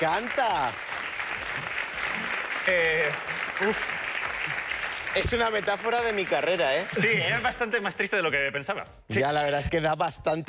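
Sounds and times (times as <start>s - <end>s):
speech: 0.0s - 1.0s, 2.6s - 4.6s, 5.2s - 10.4s
audience applause: 0.0s - 8.0s.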